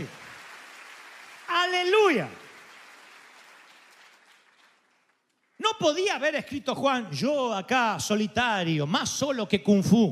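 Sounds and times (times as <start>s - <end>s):
audience applause: 0.0s - 5.4s
speech: 1.8s - 2.4s, 5.7s - 10.0s.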